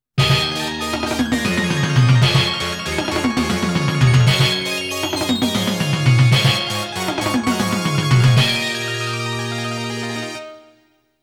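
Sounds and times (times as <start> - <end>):
game clear jingle: 0.2 - 8.8.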